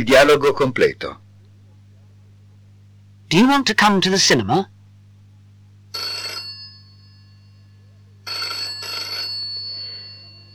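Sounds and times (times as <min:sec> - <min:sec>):
speech: 0:00.0 - 0:01.2, 0:03.3 - 0:04.7
telephone ringing: 0:05.9 - 0:10.5.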